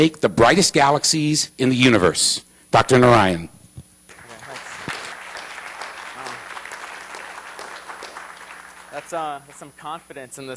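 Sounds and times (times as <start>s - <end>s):
speech: 0.0s - 3.6s, 9.1s - 10.5s
audience applause in a room: 4.1s - 9.7s.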